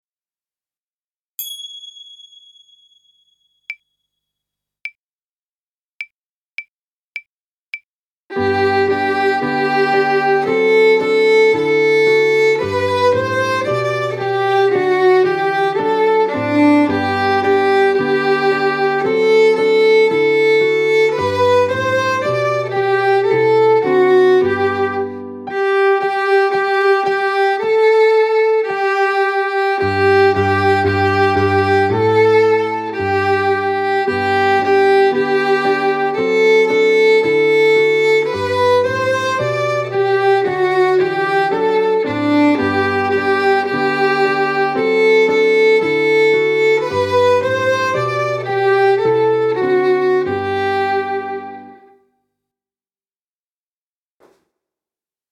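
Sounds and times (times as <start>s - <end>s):
violin: 8.3s - 52.0s.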